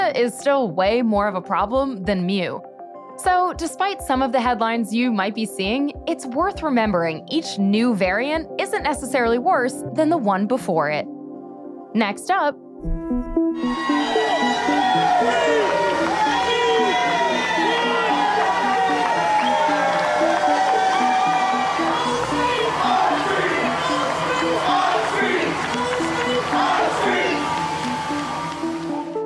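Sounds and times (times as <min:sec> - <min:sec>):
speech: 0:00.1 - 0:11.2, 0:11.9 - 0:13.0
large crowd cheering and shouting: 0:13.6 - 0:29.2.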